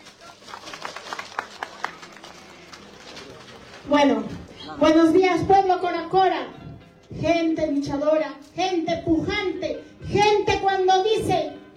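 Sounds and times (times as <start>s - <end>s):
audience applause hand claps: 0.0s - 3.8s
murmur: 0.0s - 5.6s
speech: 3.8s - 6.6s, 7.2s - 11.5s.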